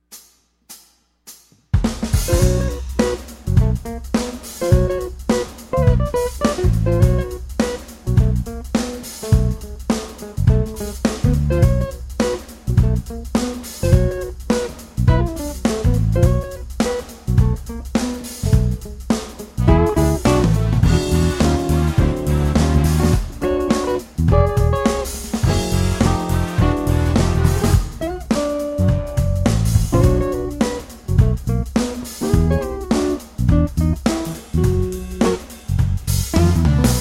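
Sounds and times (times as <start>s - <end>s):
funk groove: 1.9s - 36.9s.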